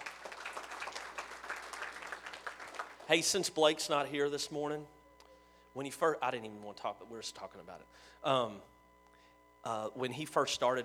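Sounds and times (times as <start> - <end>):
crowd applauding: 0.0 - 3.3
speech: 3.1 - 5.0, 5.8 - 8.7, 9.6 - 10.8.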